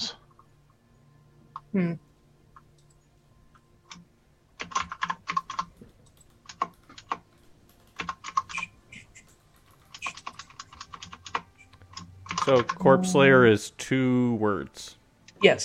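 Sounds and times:
speech: 0:01.7 - 0:02.1, 0:12.5 - 0:15.6
typing on a computer keyboard: 0:04.6 - 0:12.8.

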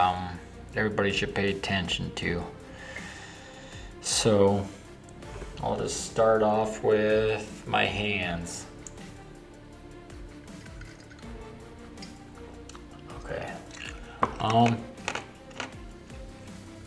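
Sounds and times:
speech: 0:00.7 - 0:02.6, 0:04.0 - 0:04.8, 0:05.6 - 0:08.7, 0:14.4 - 0:14.9
chewing ice: 0:10.6 - 0:11.3, 0:12.4 - 0:14.2.

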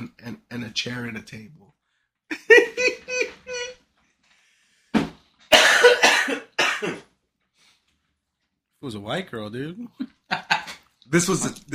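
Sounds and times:
speech: 0:00.3 - 0:01.6, 0:08.8 - 0:10.5, 0:11.1 - 0:11.7
laughter: 0:02.3 - 0:03.7, 0:10.0 - 0:10.9
person coughing: 0:05.5 - 0:07.1.

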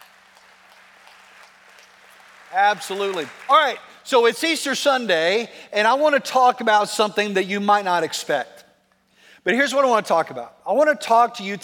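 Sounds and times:
audience applauding: 0:00.0 - 0:03.9
speech: 0:02.5 - 0:08.6, 0:09.4 - 0:11.6.

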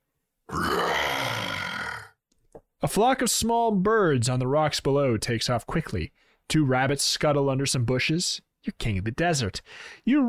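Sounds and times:
human voice imitating a growl: 0:00.5 - 0:02.2
speech: 0:02.8 - 0:10.2.

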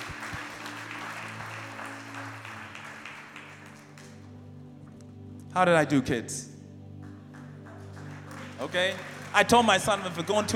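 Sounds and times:
audience clapping: 0:00.0 - 0:04.4, 0:07.0 - 0:10.5
speech: 0:05.6 - 0:06.5, 0:08.6 - 0:10.5.

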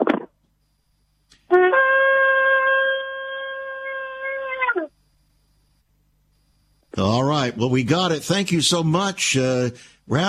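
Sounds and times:
shofar being blown over the phone: 0:01.5 - 0:04.7
speech: 0:07.0 - 0:10.2.

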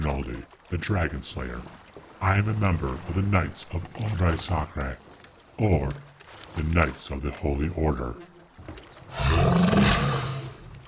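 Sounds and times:
speech: 0:00.0 - 0:08.3
sea monster roar: 0:09.1 - 0:10.6.

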